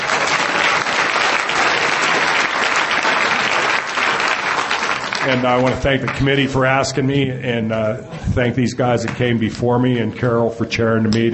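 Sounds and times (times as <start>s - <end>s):
audience applause: 0.0s - 6.8s
speech: 5.3s - 11.3s.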